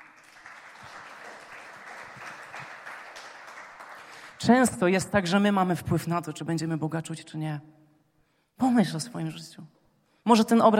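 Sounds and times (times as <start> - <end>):
audience applause: 0.0 - 4.4
speech: 4.4 - 7.8, 8.6 - 10.7.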